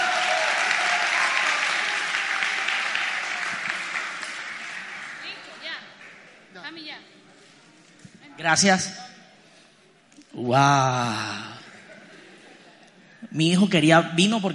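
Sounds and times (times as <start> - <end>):
audience applause for magician: 0.0 - 6.5
speech: 8.4 - 9.0, 10.5 - 11.3, 13.3 - 14.5
laughter: 11.4 - 13.1.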